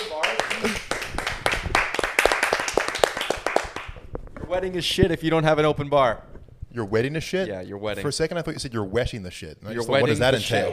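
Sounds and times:
hands clapping: 0.0 - 4.1
speech: 4.5 - 10.7.

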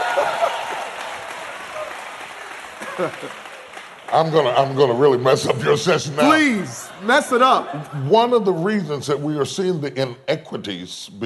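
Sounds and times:
audience clapping at a church-style leadership talk: 0.0 - 5.4
laughter: 2.7 - 3.7, 5.2 - 8.8
speech: 3.0 - 3.4, 4.1 - 11.2.

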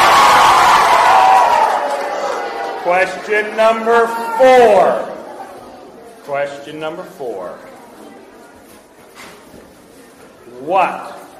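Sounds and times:
group of children cheering: 0.0 - 5.2
speech: 3.0 - 5.1, 6.3 - 7.7, 10.6 - 11.2.

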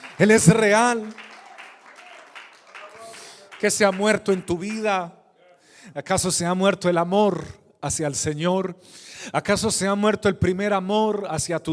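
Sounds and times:
audience applauding: 0.0 - 5.0
speech: 0.2 - 1.3, 3.6 - 5.2, 5.8 - 11.7.

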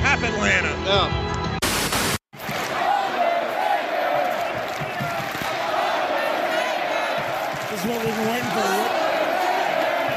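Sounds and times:
speech: 0.2 - 1.3
arena crowd cheering with mixed reaction: 2.4 - 10.1.

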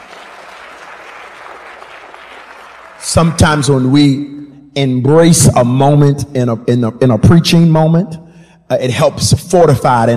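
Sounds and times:
audience clapping: 0.0 - 3.8
speech: 3.0 - 10.1.

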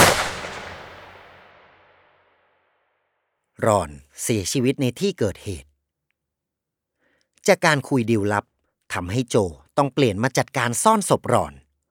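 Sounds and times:
gunshot from a bodyguard's gun going off by accident: 0.0 - 2.1
speech: 3.6 - 5.7, 7.4 - 11.6.

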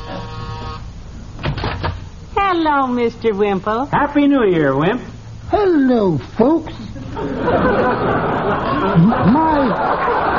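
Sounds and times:
door buzzer: 0.0 - 2.0
speech: 2.6 - 10.3
laughter: 6.8 - 10.3.

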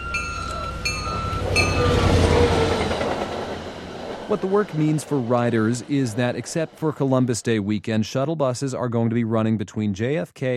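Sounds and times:
commuter rail train rumbling past: 0.0 - 8.1
speech: 4.3 - 10.5.

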